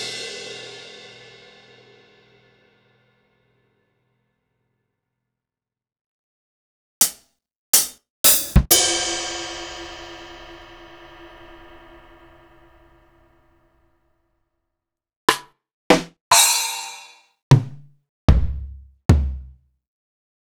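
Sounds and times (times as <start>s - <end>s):
Akai MPC500 Bedroom kit: 7.8s - 8.9s, 15.3s - 19.6s.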